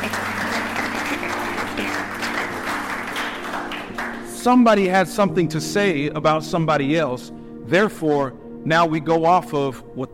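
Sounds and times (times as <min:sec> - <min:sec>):
audience applause welcoming a visitor: 0:00.0 - 0:04.4
speech: 0:04.4 - 0:10.1.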